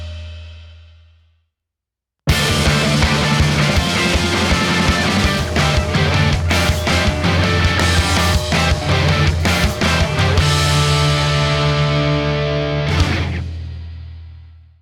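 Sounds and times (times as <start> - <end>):
instrumental music: 2.3 - 13.4.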